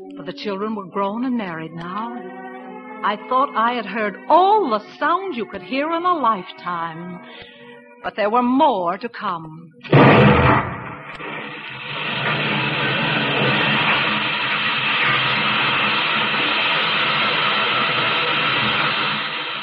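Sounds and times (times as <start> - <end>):
speech: 0.2 - 2.4, 3.0 - 11.6
blast: 9.8 - 17.2
oil well drilling and pumping machinery: 9.9 - 19.6.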